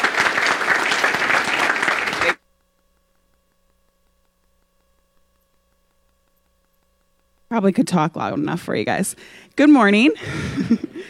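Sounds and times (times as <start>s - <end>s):
audience applause: 0.0s - 2.4s
speech: 7.6s - 11.0s
laughter: 10.2s - 11.0s.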